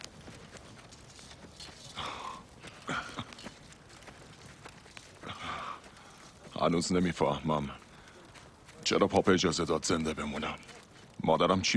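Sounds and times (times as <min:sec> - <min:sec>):
horses' hooves clip-clopping: 0:00.0 - 0:11.7
louder breathy bursts from horses: 0:01.9 - 0:03.7, 0:05.2 - 0:06.5
speech: 0:06.6 - 0:07.8, 0:08.9 - 0:11.7.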